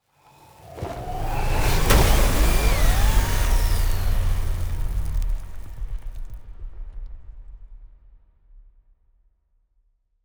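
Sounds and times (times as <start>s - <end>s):
transport ship moving: 0.4s - 6.4s.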